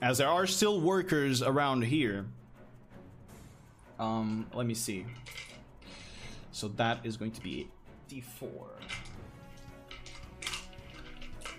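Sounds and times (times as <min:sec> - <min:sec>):
speech: 0:00.0 - 0:02.4, 0:04.0 - 0:05.5, 0:06.5 - 0:09.2
dice rolling across a hard surface: 0:05.1 - 0:05.7, 0:08.8 - 0:11.5.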